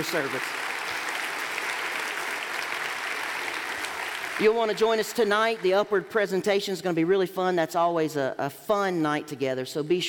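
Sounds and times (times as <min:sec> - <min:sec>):
speech: 0:00.0 - 0:00.6, 0:04.4 - 0:10.0
audience applause: 0:00.0 - 0:05.8.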